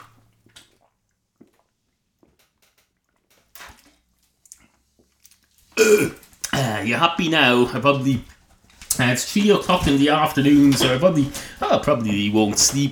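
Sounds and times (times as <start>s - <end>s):
person sipping a drink: 0.8s - 2.4s, 3.6s - 6.8s
speech: 5.9s - 6.2s, 6.8s - 8.3s, 9.0s - 12.8s.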